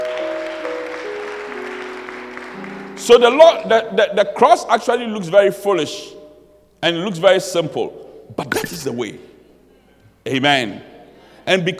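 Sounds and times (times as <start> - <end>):
audience clapping: 0.0 - 3.5
speech: 3.0 - 6.2, 6.8 - 9.3, 10.2 - 10.9, 11.5 - 11.7.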